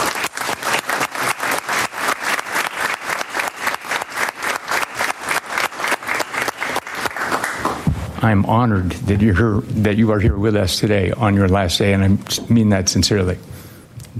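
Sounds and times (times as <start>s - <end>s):
round of applause: 0.0s - 7.9s
speech: 8.2s - 13.6s.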